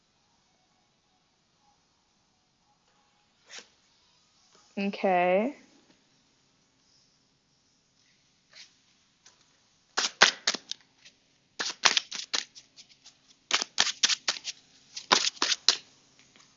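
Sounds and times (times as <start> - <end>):
speech: 4.8 - 5.6
tarot cards being shuffled and pulled: 10.0 - 15.8.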